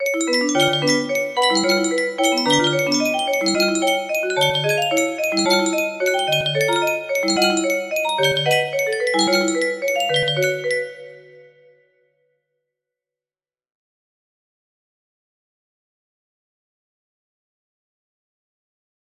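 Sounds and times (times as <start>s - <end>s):
music box melody: 0.0s - 11.6s.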